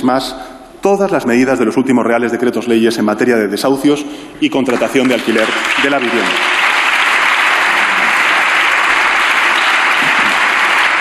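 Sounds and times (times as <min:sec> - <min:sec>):
speech: 0:00.0 - 0:06.7
parliamentary group applauding: 0:04.6 - 0:10.9.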